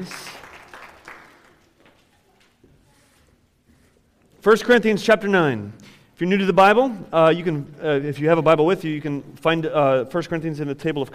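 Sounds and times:
speech: 0.0 - 0.3, 4.4 - 11.1
audience applause: 0.0 - 2.3.

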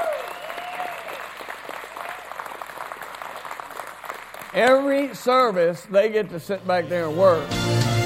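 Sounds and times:
audience applauding: 0.0 - 5.6
speech: 4.6 - 7.9.

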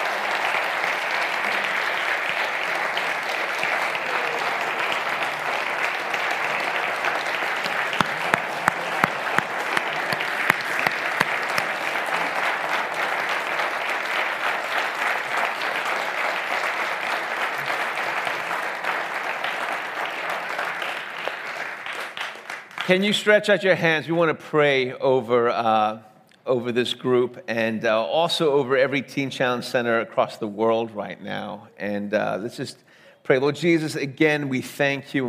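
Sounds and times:
large audience applause: 0.0 - 23.0
speech: 22.9 - 35.2.

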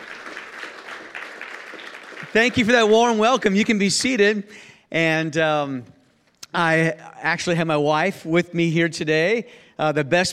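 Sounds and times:
audience applause: 0.0 - 2.9
speech: 2.3 - 10.3.

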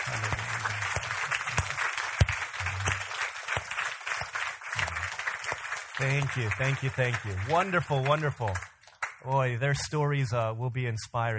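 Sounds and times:
low voices murmuring: 0.0 - 1.8, 2.6 - 3.1
audience applause welcoming home returning members: 0.0 - 9.6
speech: 6.0 - 11.3.

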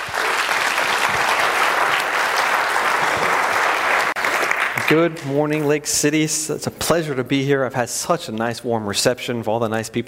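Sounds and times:
Lake City audience applauding to welcome a speaker: 0.0 - 5.4
speech: 4.9 - 10.0.

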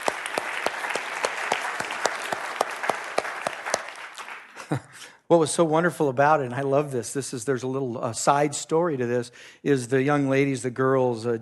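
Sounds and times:
audience applause: 0.0 - 4.8
speech: 4.7 - 11.3.

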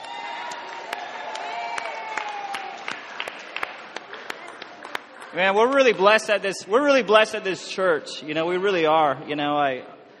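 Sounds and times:
high whoops: 0.0 - 3.0
audience applause for the band: 0.0 - 6.2
crowd cheering: 0.0 - 6.2
speech: 5.3 - 10.0.

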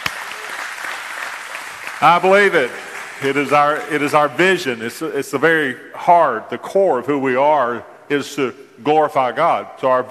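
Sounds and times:
church congregation praise clapping: 0.0 - 4.9
speech: 2.0 - 10.0.

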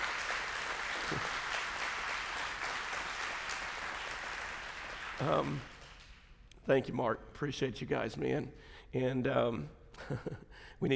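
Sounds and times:
audience round of applause: 0.0 - 6.2
speech: 5.2 - 5.7, 6.6 - 10.9.

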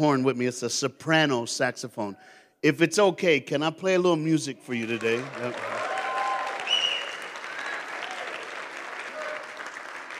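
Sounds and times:
speech: 0.0 - 5.8
audience clapping: 4.7 - 10.1.

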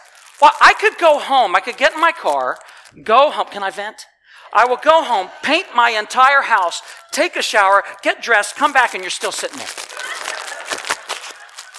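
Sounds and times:
crinkling plastic packaging being pulled open: 0.0 - 3.8, 6.2 - 11.7
speech: 0.4 - 9.8
laughter: 4.5 - 7.4, 9.2 - 11.7.

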